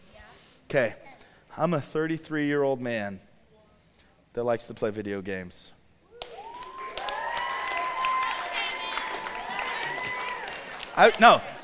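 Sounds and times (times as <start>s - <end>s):
speech: 0.7s - 1.0s, 1.6s - 3.3s, 4.4s - 5.8s, 11.0s - 11.5s
audience whooping: 6.1s - 11.6s.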